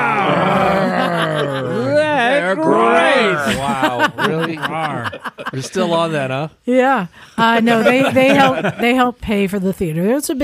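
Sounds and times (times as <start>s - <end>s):
people imitating a tiger roar: 0.0s - 5.0s
laughter: 0.0s - 6.3s, 7.4s - 9.1s
speech: 3.9s - 10.4s.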